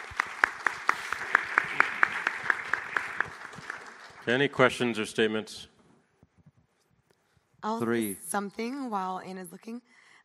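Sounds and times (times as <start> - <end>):
audience applause: 0.0 - 4.9
speech: 4.2 - 5.7, 7.6 - 10.2.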